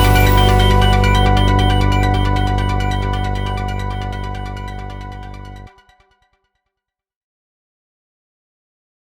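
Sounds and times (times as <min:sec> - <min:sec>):
instrumental music: 0:00.0 - 0:06.0.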